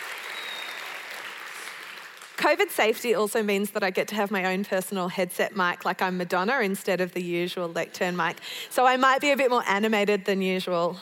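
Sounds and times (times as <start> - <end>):
audience cheering and applause: 0.0 - 2.4
speech: 2.4 - 11.0.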